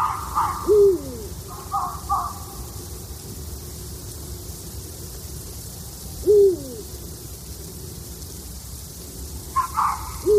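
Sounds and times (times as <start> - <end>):
eagle-owl hooting: 0.0 - 2.5, 6.2 - 6.9, 9.6 - 10.3
fox barking: 0.0 - 2.6, 9.5 - 10.3.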